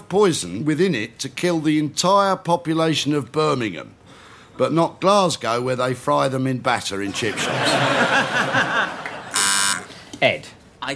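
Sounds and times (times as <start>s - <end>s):
speech: 0.1s - 4.0s, 4.6s - 8.8s, 10.2s - 10.9s
crowd laughing: 7.2s - 9.6s
game show buzzer: 9.2s - 9.9s.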